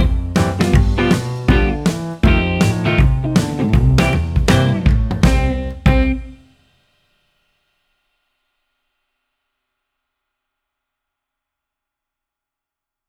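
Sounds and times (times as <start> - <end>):
jazz backing track: 0.0 - 6.5.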